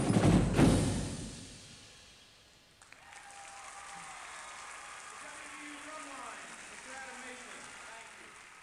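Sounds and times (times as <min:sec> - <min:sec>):
percussion solo: 0:00.0 - 0:02.3.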